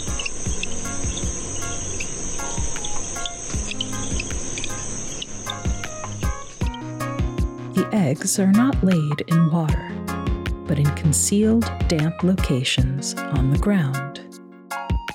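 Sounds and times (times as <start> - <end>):
greenhouse frogs giving short high-pitched chirps: 0.0 - 7.4
steady shrill drone of insects: 0.0 - 7.8
speech: 7.8 - 10.0, 10.7 - 14.1.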